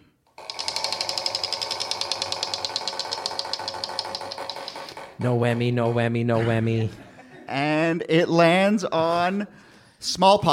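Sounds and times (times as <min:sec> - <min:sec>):
game show prize wheel spinning with plastic clicks: 0:00.3 - 0:05.2
speech: 0:05.2 - 0:10.5.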